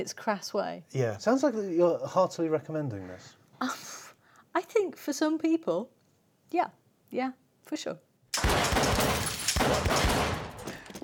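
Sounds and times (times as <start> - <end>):
speech: 0.0 - 4.0, 4.6 - 8.1
gunfire through a wall: 8.4 - 11.0.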